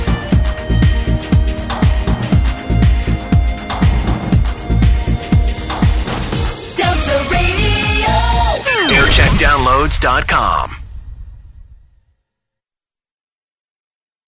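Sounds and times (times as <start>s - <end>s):
jingle montage: 0.1s - 10.9s.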